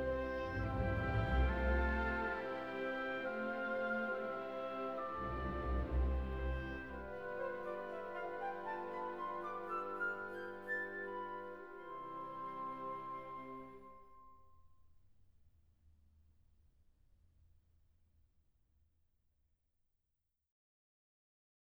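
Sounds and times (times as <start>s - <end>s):
orchestral symphony movement depicting a thunderstorm: 0.0s - 14.2s.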